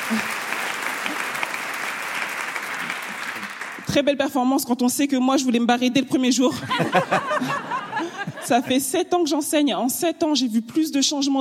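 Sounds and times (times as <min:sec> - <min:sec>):
audience applause: 0:00.0 - 0:03.9
speech: 0:00.1 - 0:00.4, 0:03.9 - 0:07.7, 0:08.5 - 0:11.3
laughter: 0:06.5 - 0:08.8.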